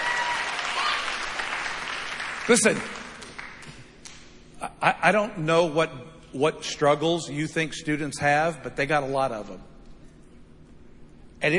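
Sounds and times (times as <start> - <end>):
faint whoops and cheers: 0.0 - 1.3
church audience applause: 0.0 - 3.8
speech: 2.5 - 3.0, 4.8 - 9.7, 11.4 - 11.5.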